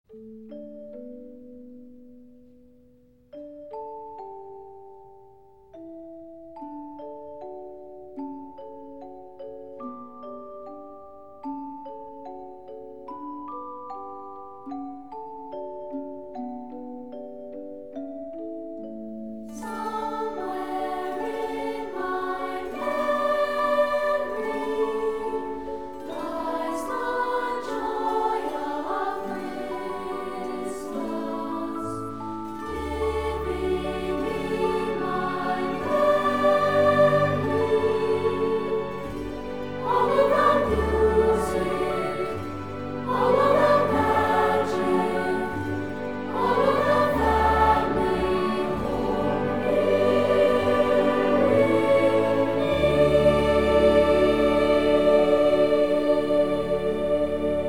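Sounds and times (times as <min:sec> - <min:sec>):
chorus orchestra version: 0:19.3 - 0:57.6.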